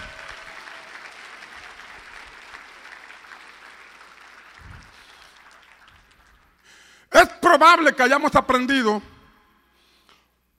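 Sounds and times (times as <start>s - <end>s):
loud audience applause: 0.0s - 6.9s
speech: 7.2s - 9.1s.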